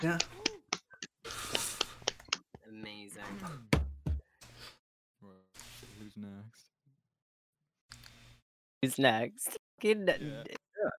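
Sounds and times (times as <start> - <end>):
speech: 0.0 - 0.4, 6.2 - 6.6, 8.8 - 10.9
people clapping: 0.0 - 2.5.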